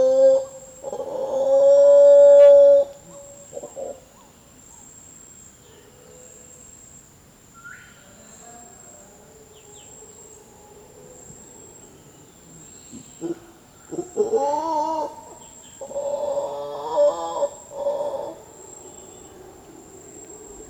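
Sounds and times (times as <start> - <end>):
mantled howler Alouatta palliata howling: 0.0 - 4.3, 12.9 - 20.6.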